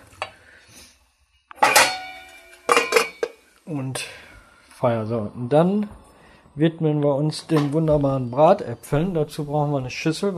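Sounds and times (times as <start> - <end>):
metal lid set onto a cooking pot: 1.5 - 3.4
speech: 3.7 - 6.0, 6.6 - 10.3.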